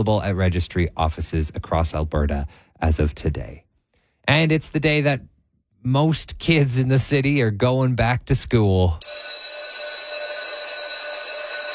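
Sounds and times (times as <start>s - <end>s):
speech: 0.0s - 3.6s, 4.2s - 9.3s
school bell ringing: 9.0s - 11.7s.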